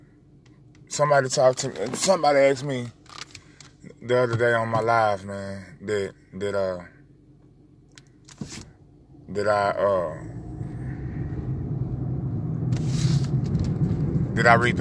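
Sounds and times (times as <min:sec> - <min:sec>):
speech: 0:00.9 - 0:03.0, 0:04.0 - 0:07.0, 0:09.3 - 0:10.4, 0:14.4 - 0:14.8
car driving on the road: 0:08.4 - 0:14.8.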